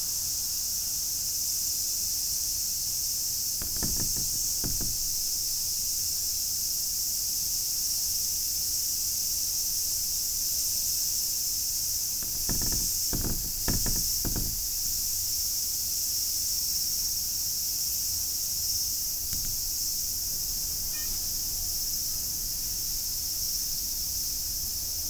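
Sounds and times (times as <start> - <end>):
cicadas buzzing: 3.4 - 10.7, 11.4 - 25.0
low knocking taps: 3.6 - 5.8, 12.2 - 15.2, 19.3 - 20.1.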